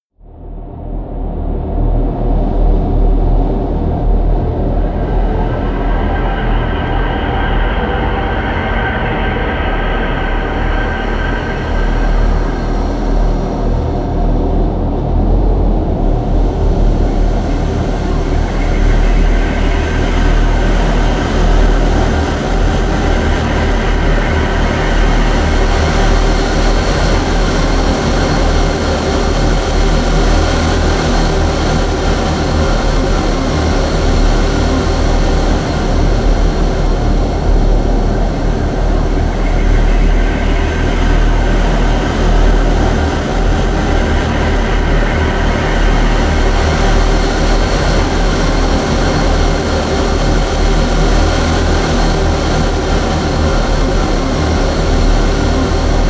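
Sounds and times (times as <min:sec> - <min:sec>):
droning howl: 0:01.5 - 0:56.0.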